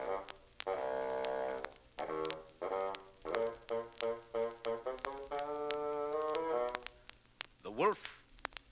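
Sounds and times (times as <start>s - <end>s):
bassoon playing a low gruff melody: 0.0s - 6.8s
soft accompaniment: 0.0s - 7.0s
speech: 7.8s - 8.2s.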